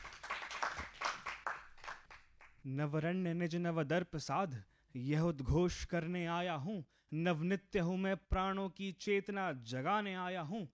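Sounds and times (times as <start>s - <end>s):
audience clapping to welcome a performer onto the stage: 0.0s - 2.6s
speech: 2.6s - 10.7s.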